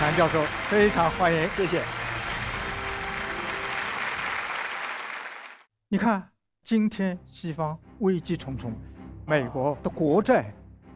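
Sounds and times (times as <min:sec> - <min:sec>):
audience applause welcoming a professor to the lectern: 0:00.0 - 0:05.7
speech: 0:00.1 - 0:02.0, 0:05.9 - 0:10.9.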